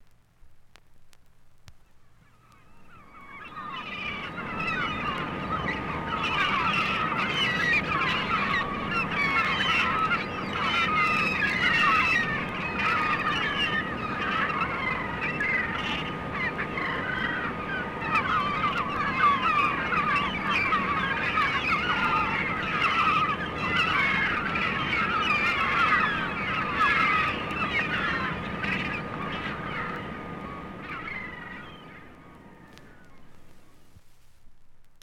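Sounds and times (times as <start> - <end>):
gulls calling: 1.7 - 34.0.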